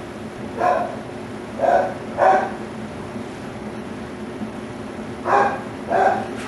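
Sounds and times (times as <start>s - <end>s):
dog barking: 0.5s - 2.6s, 5.3s - 6.4s.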